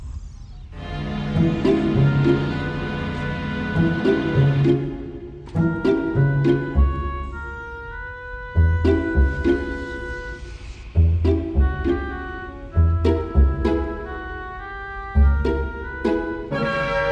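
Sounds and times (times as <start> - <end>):
conversation hold music: 0.8 - 17.1.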